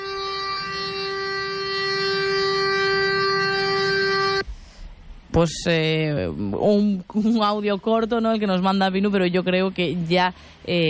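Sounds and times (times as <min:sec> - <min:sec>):
truck horn honking in traffic: 0:00.0 - 0:04.4
speech: 0:05.4 - 0:10.8.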